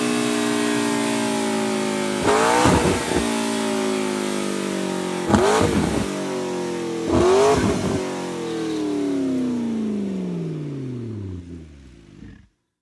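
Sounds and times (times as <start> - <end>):
McLaren 650S sports car with stock exhaust: 0.0 - 12.6.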